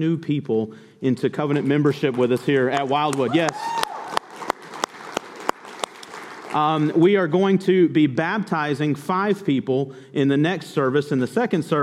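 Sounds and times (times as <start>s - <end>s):
speech: 0.0s - 3.7s, 6.5s - 11.8s
church congregation clapping: 1.5s - 7.2s.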